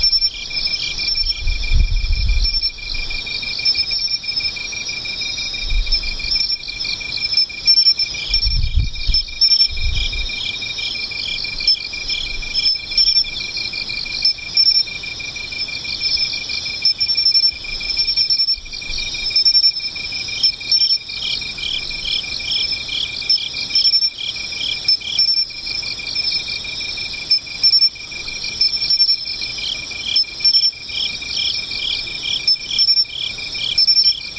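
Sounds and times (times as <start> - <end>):
insect chorus: 0.0 - 34.3.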